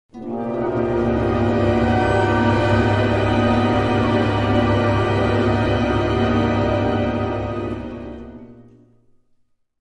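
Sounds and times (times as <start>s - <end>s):
telepathy ambience: 0.3s - 8.7s.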